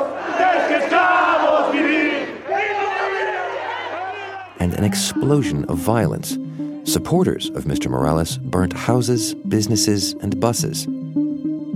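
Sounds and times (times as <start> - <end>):
large crowd of opposition protesters cheering and shouting: 0.0 - 5.2
speech: 4.6 - 11.0.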